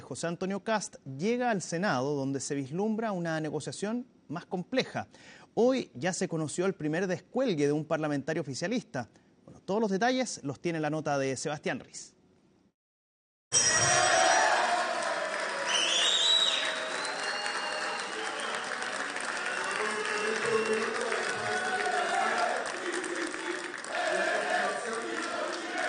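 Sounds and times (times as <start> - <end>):
speech: 0.1 - 12.2
applause of legislators: 13.7 - 25.8
legislators chanting: 19.8 - 25.8.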